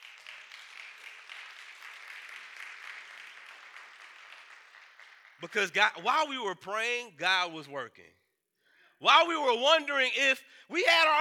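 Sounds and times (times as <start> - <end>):
audience clapping: 0.0 - 6.3
speech: 5.4 - 8.2, 9.0 - 11.1.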